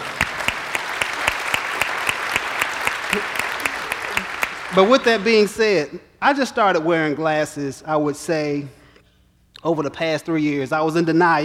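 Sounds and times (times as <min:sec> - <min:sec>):
audience applauding to welcome the speaker's family: 0:00.0 - 0:05.5
speech: 0:04.7 - 0:08.8, 0:09.6 - 0:11.4.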